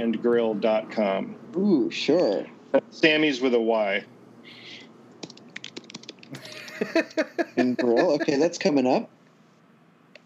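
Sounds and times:
speech: 0.0 - 4.6, 6.3 - 9.2
typing a web address on a computer keyboard: 5.2 - 6.3
laughter: 6.3 - 8.5.

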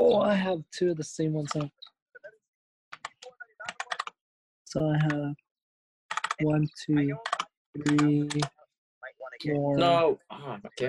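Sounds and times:
speech: 0.1 - 1.9, 4.7 - 5.4, 6.4 - 8.6, 9.4 - 10.8
faint typing on a computer keyboard: 3.0 - 4.1, 6.1 - 6.4, 7.2 - 8.5.

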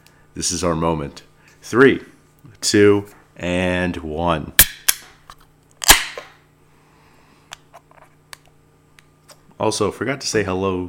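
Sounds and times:
speech: 0.4 - 4.6, 9.6 - 10.8
beer can cracking open with a pop and hiss: 5.8 - 6.3.

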